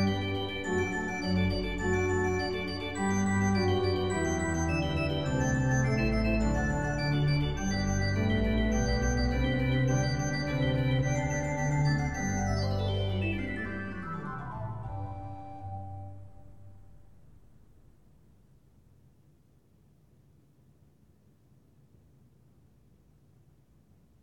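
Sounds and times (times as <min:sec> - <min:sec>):
organ playing a concerto presto movement in G major: 0:00.0 - 0:16.9.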